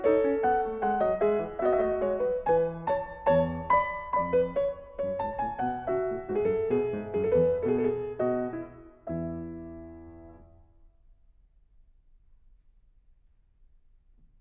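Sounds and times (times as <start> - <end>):
gavotte: 0.0 - 10.6.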